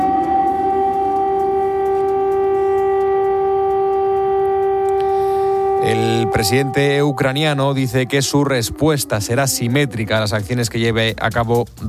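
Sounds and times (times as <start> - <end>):
air raid sirens wailing: 0.0 - 11.0
speech: 6.3 - 11.8.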